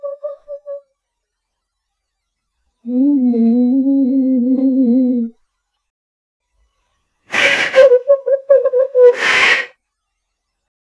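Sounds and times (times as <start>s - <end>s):
woman making funny ghost noises: 2.9s - 5.3s, 7.3s - 9.7s.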